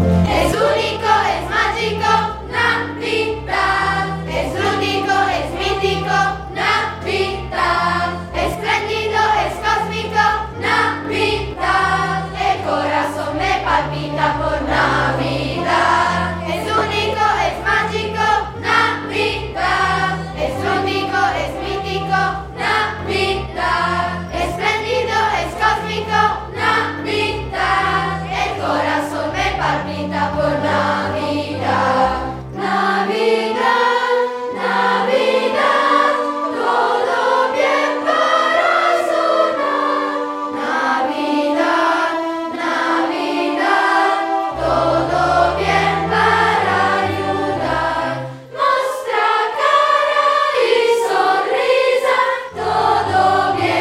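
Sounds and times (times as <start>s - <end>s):
Christmas choir singing: 0.1s - 53.7s.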